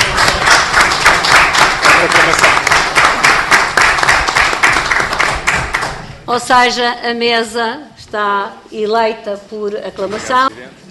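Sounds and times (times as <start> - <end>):
round of applause: 0.0 - 6.1
speech: 6.3 - 10.8.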